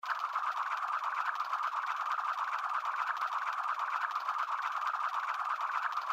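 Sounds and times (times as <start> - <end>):
reel spinning: 0.0 - 6.1.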